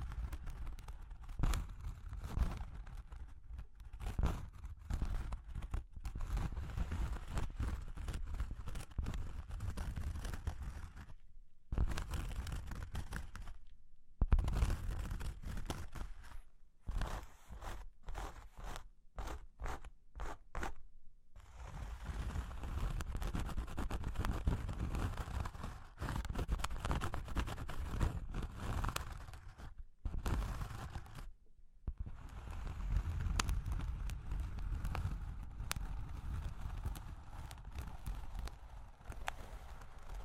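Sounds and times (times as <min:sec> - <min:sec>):
tapping, scratching and tracing on cork and wood: 0:00.2 - 0:13.6, 0:14.3 - 0:20.8, 0:21.4 - 0:31.3, 0:31.9 - 0:40.2.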